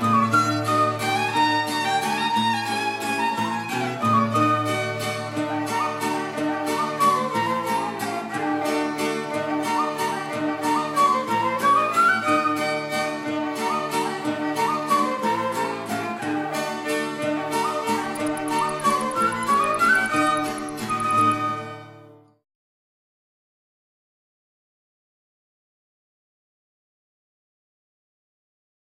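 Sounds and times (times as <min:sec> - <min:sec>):
folk music: 0:00.0 - 0:22.3.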